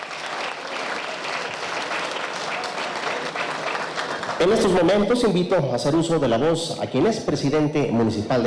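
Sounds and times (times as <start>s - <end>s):
audience applause: 0.0s - 4.9s
speech: 4.4s - 8.4s.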